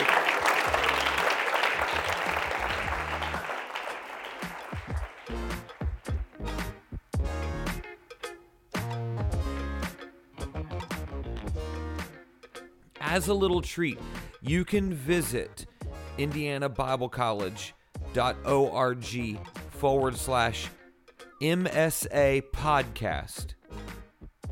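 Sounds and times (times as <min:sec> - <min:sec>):
audience clapping: 0:00.0 - 0:06.9
rhythmic music with a strong beat: 0:00.0 - 0:24.4
speech: 0:13.1 - 0:20.8, 0:21.4 - 0:23.6.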